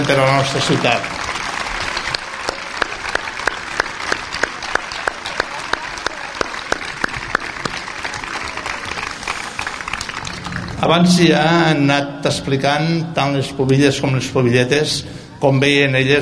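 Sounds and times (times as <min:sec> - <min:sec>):
crowd applauding: 0:00.0 - 0:11.2
speech: 0:00.1 - 0:01.2, 0:10.8 - 0:16.1.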